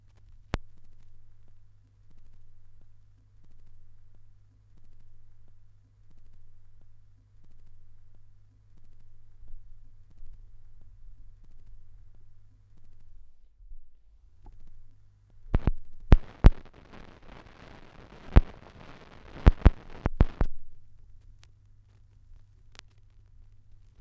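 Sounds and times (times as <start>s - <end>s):
vinyl record noise: 0.0s - 4.0s, 14.5s - 24.0s.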